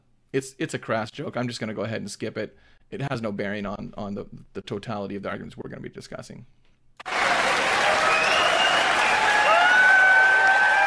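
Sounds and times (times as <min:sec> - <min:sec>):
speech: 0:00.3 - 0:06.7
audience applause: 0:07.0 - 0:10.8
faint whistles and cheers: 0:07.1 - 0:10.8.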